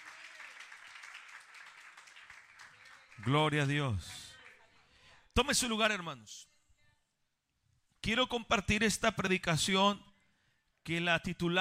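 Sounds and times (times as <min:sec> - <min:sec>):
audience clapping hands in praise: 0:00.0 - 0:04.6
speech: 0:03.2 - 0:04.2, 0:05.4 - 0:06.5, 0:08.0 - 0:10.1, 0:10.8 - 0:11.5.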